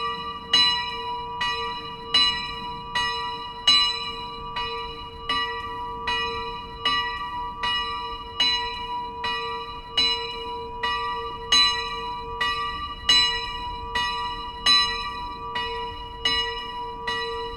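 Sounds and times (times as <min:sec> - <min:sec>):
church bell ringing: 0:00.0 - 0:17.5.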